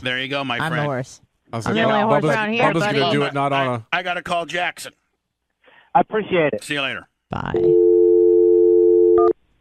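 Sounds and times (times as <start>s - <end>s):
speech: 0.0s - 5.0s, 6.0s - 7.9s
telephone dial tone: 7.6s - 9.3s.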